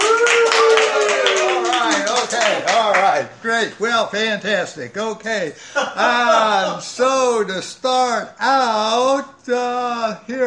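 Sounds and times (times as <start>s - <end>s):
audience applause welcoming a speaker at a session: 0.0s - 3.3s
speech: 3.4s - 10.4s
laughter: 5.5s - 7.0s.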